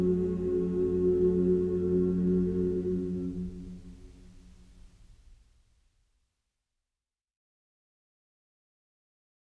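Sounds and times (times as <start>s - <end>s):
chorale: 0.0s - 5.3s.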